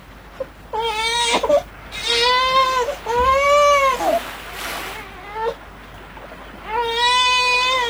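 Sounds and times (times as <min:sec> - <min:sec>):
baby crying in pandanus bushes: 0:00.8 - 0:04.2, 0:06.7 - 0:07.8.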